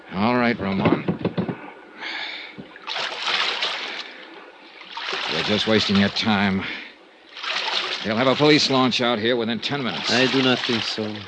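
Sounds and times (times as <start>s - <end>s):
speech: 0.5s - 1.2s, 5.5s - 6.8s, 8.0s - 11.2s
wooden paddle splashing through water while rowing a boat across a bay: 2.6s - 6.5s, 7.3s - 9.1s, 9.7s - 11.2s.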